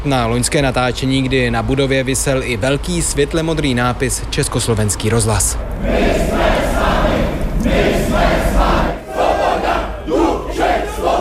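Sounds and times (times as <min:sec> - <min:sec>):
speech: 0:00.0 - 0:06.8
crowd chanting: 0:05.8 - 0:11.1.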